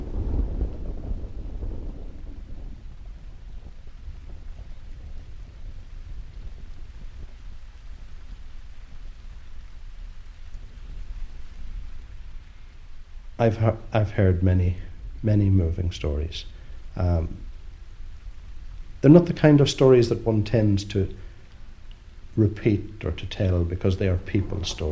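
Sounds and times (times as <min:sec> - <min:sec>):
rain on an island: 0:00.0 - 0:24.9
speech: 0:13.4 - 0:17.5, 0:19.0 - 0:21.2, 0:22.4 - 0:24.9.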